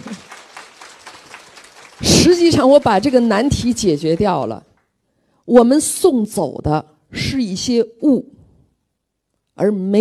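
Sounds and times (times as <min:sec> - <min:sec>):
audience applause: 0:00.0 - 0:03.5
speech: 0:02.4 - 0:04.7, 0:05.5 - 0:08.3, 0:09.6 - 0:09.9.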